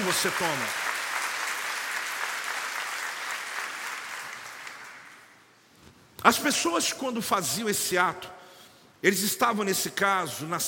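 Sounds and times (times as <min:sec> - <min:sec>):
audience applauding: 0:00.0 - 0:05.4
speech: 0:00.1 - 0:00.9, 0:06.2 - 0:08.4, 0:09.0 - 0:10.6.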